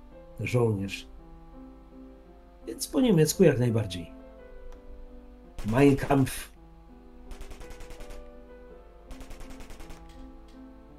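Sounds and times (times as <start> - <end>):
speech: 0.4 - 1.1, 2.7 - 4.2, 5.6 - 6.5
automatic gunfire bursts: 5.6 - 6.3, 7.3 - 8.3, 9.1 - 10.1.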